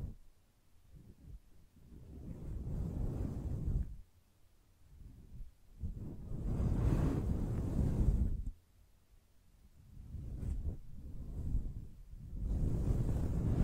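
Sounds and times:
soft brushing on a microphone: 0.9 - 4.0, 5.0 - 8.5, 9.9 - 13.6.

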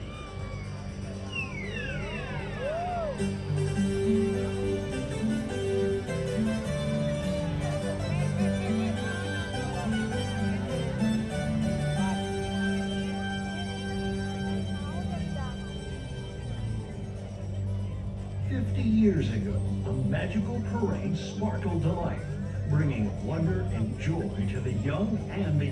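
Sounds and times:
crowd murmuring and talking: 0.0 - 25.7
parade music with bouncy low pulse and bright tones: 0.0 - 25.7.

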